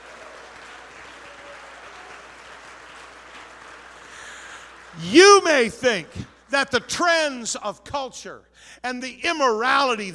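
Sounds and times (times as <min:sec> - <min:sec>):
audience clapping: 0:00.0 - 0:06.0
speech: 0:05.0 - 0:10.1.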